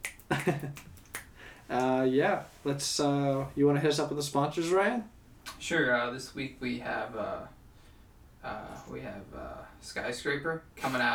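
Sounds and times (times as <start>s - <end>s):
finger snaps: 0.0s - 1.9s
speech: 0.4s - 0.9s, 1.7s - 7.6s, 8.4s - 11.1s.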